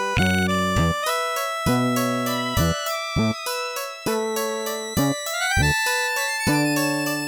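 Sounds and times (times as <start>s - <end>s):
milonga music aircheck: 0.2s - 7.2s.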